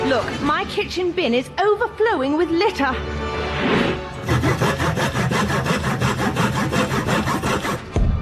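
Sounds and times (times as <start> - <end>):
speech: 0.1 - 4.6
sawing: 4.1 - 8.1.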